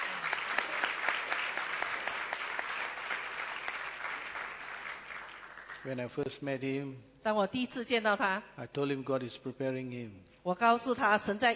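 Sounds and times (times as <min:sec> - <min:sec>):
church congregation applause welcoming a guest: 0:00.0 - 0:05.9
speech: 0:05.8 - 0:11.5.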